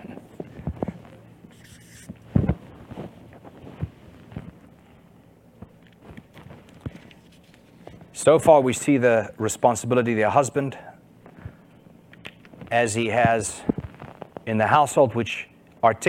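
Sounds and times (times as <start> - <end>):
pen scratching while drawing a picture of a roof: 1.5 - 2.1
speech: 8.2 - 10.9, 12.7 - 13.7, 14.5 - 16.0.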